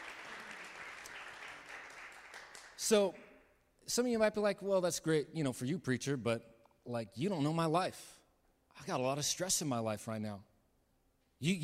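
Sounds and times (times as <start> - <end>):
audience clapping: 0.0 - 3.2
speech: 2.8 - 3.2, 3.9 - 8.2, 8.8 - 10.5, 11.4 - 11.6.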